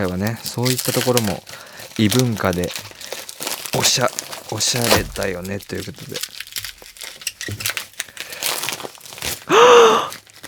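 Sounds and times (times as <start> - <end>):
speech: 0.0 - 2.9, 3.7 - 6.3, 7.5 - 7.7
package wrapped in bubble wrap being unwrapped: 0.0 - 10.4
person gasping: 9.5 - 10.2.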